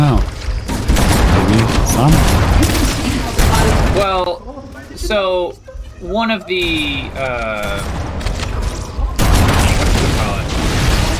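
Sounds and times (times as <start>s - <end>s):
explosion: 0.7s - 4.1s, 7.0s - 11.1s
speech: 5.1s - 8.0s.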